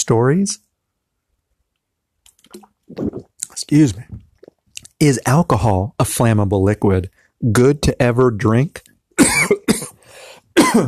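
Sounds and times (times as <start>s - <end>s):
speech: 0.0s - 0.6s, 2.5s - 4.2s, 5.0s - 9.6s
person coughing after swallowing wrong: 9.2s - 10.0s, 10.6s - 10.8s
wheezy breath: 10.0s - 10.5s.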